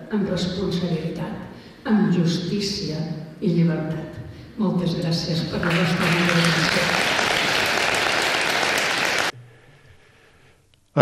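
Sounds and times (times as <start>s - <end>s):
speech: 0.1s - 7.1s
long sustained audience applause: 5.6s - 9.4s.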